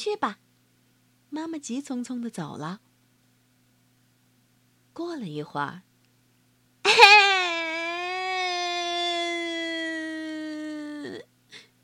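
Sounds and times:
speech: 0.0 - 0.5, 1.3 - 2.8, 5.0 - 5.9, 11.0 - 11.7
child crying: 6.9 - 11.2.

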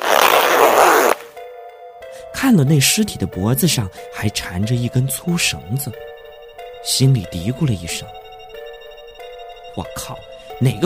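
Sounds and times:
zipper being pulled open: 0.0 - 1.3
speech: 2.4 - 6.1, 6.8 - 8.2, 9.8 - 10.8.

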